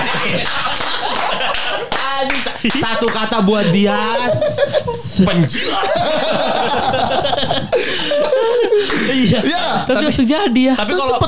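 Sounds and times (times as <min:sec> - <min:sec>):
hand clapping: 0:00.0 - 0:03.6, 0:08.8 - 0:09.3
laughter: 0:00.0 - 0:11.2
speech: 0:00.2 - 0:00.7, 0:02.2 - 0:11.2.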